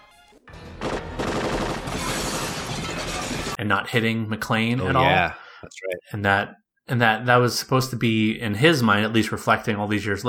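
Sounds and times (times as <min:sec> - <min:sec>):
automatic gunfire: 0:00.6 - 0:03.6
glass shattering: 0:00.7 - 0:03.6
speech: 0:03.6 - 0:10.2.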